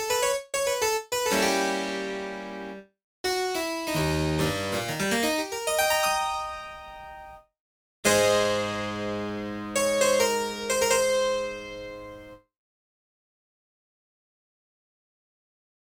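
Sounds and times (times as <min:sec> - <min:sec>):
piano in G-sharp minor: 0:00.0 - 0:12.4.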